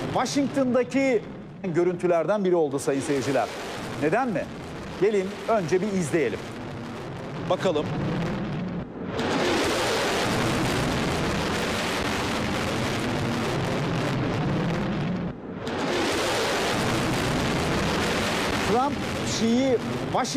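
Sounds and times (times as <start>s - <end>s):
speech: 0.2s - 6.5s, 7.5s - 8.2s, 18.8s - 20.3s
low-flying B-1 bomber roaring overhead: 3.0s - 20.3s.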